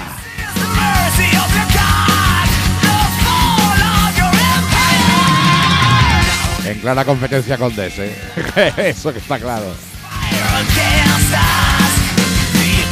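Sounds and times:
loud enthusiastic yell: 0.0 - 6.6, 10.0 - 12.0
speech: 6.8 - 9.9
laughter: 7.2 - 11.2.

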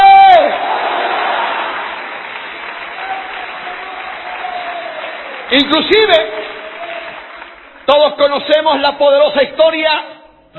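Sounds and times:
church audience applause: 0.0 - 8.3
speech: 5.6 - 6.6, 7.9 - 10.5.

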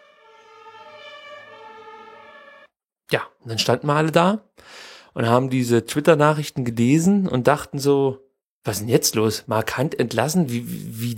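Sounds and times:
several ambulance sirens passing outside: 0.0 - 2.8
speech: 3.1 - 11.1.

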